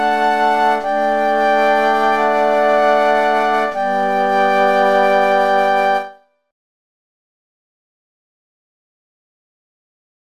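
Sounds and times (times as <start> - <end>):
flute playing a carol: 0.0 - 6.2.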